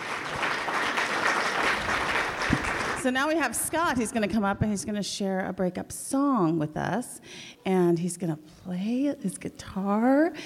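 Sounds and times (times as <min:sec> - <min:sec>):
audience applause after a performance: 0:00.0 - 0:03.1
speech: 0:03.0 - 0:10.4.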